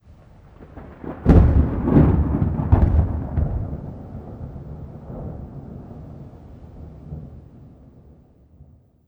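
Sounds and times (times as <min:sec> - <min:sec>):
medium thunder: 0:00.0 - 0:09.0.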